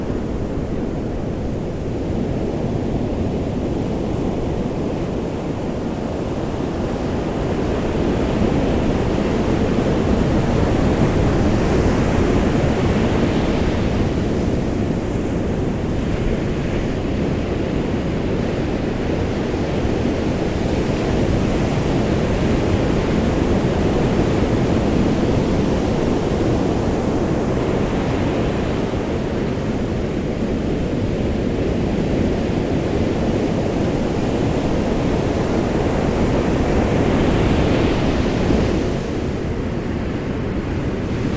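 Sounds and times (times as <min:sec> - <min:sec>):
waves on beach: 0:00.0 - 0:41.3.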